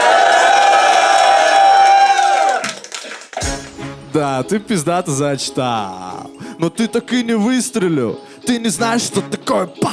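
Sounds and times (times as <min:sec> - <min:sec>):
crowd cheering and shouting: 0:00.0 - 0:02.8
speech: 0:04.2 - 0:09.9.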